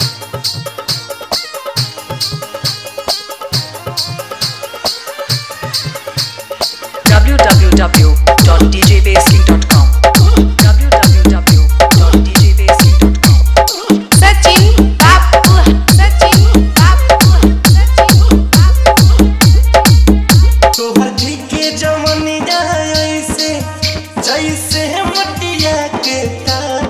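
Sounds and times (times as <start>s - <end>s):
hard electronic mix: 5.4s - 26.8s.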